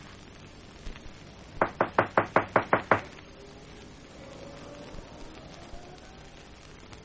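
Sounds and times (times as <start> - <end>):
knocking on a front door: 1.6 - 3.1.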